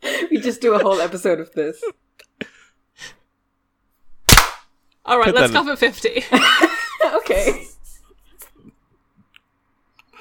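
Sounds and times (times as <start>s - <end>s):
speech: 0.4s - 2.3s, 5.0s - 7.7s
hand clap: 4.3s - 4.7s.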